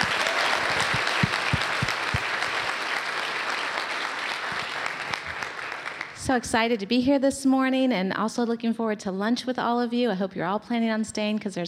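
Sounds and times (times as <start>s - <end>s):
audience applause: 0.0s - 6.2s
speech: 6.3s - 11.6s.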